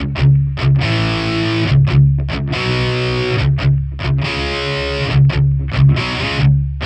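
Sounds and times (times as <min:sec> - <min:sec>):
distorted guitar in C sharp minor: 0:00.0 - 0:06.8.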